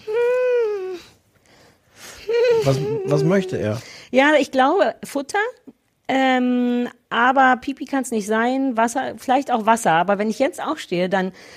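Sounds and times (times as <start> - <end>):
Dalmatian dog whimpering: 2.3 - 3.8
speech: 2.6 - 11.5.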